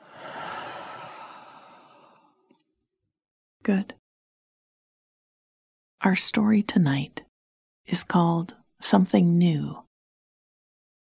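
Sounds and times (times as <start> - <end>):
person breathing in and out during a guided relaxation exercise: 0.0 - 2.5
speech: 3.7 - 4.0, 6.0 - 7.2, 7.9 - 9.8.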